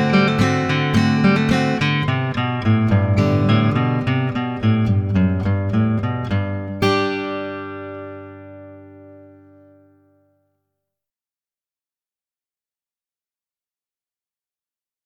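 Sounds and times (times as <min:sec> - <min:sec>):
acoustic music: 0:00.0 - 0:10.4.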